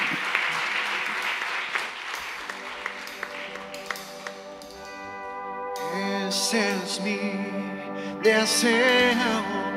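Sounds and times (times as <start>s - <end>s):
audience applause: 0.0s - 4.6s
speech: 6.5s - 9.6s.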